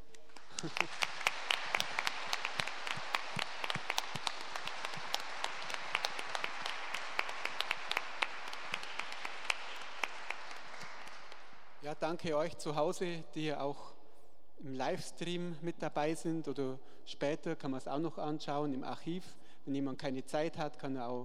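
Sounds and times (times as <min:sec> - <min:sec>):
audience applause: 0:00.0 - 0:11.6
speech: 0:00.6 - 0:01.0, 0:12.0 - 0:14.0, 0:14.6 - 0:21.2.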